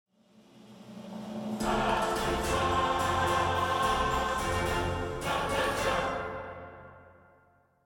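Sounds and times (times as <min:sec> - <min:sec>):
choir singing: 0:01.6 - 0:07.3.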